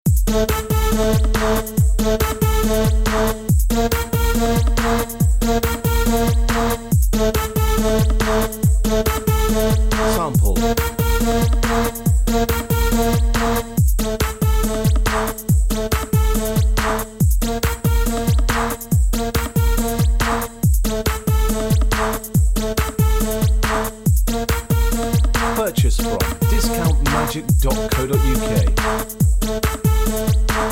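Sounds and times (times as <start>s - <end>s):
techno backing track: 0.1s - 30.7s.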